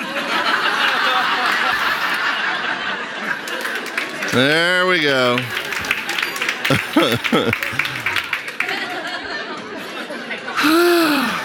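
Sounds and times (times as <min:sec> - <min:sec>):
laughter: 0:00.0 - 0:11.4
audience applauding: 0:00.5 - 0:02.5, 0:03.2 - 0:09.4
speech: 0:04.4 - 0:05.6, 0:06.7 - 0:08.0, 0:10.6 - 0:11.0.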